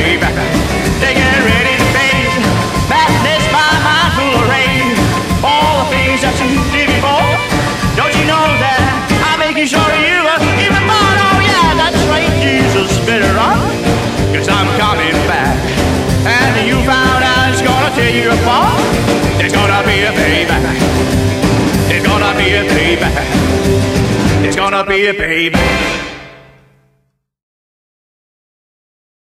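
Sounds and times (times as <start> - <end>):
rockabilly rock and roll music: 0.0 - 26.9.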